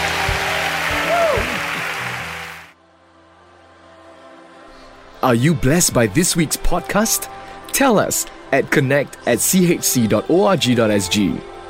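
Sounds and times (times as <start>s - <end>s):
audience hand clapping: 0.0s - 2.8s
speech: 5.2s - 11.5s.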